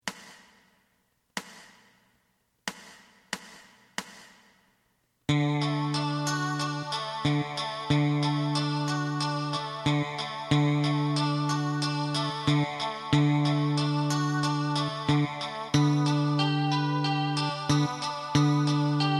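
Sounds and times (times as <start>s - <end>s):
lead melody: 5.3s - 19.1s.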